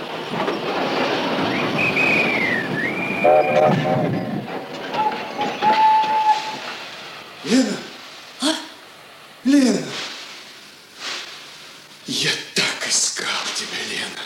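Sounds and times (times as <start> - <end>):
armored train rumble and rail clatter pulling into a station: 0.0 - 9.4, 12.2 - 14.2
armored train whistle: 1.5 - 4.3, 4.9 - 6.7
speech: 3.4 - 4.3.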